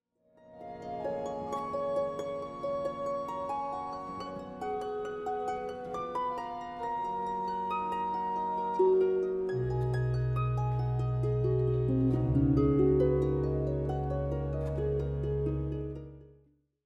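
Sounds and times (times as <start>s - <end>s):
harp nocturne: 0.3s - 16.6s.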